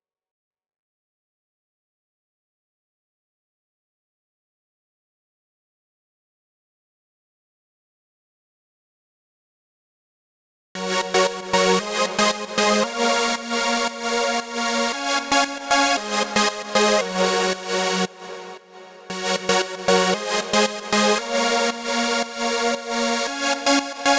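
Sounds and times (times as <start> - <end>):
lead synth in F minor: 10.8 - 24.1.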